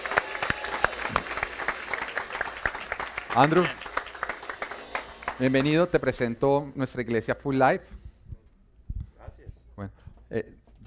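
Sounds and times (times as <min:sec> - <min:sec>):
audience applause welcoming a guest: 0:00.0 - 0:06.1
speech: 0:03.4 - 0:03.8, 0:05.4 - 0:08.0, 0:09.8 - 0:10.8.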